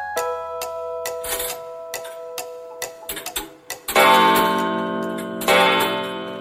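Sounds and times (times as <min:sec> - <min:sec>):
clock ticking: 0:00.2 - 0:06.4.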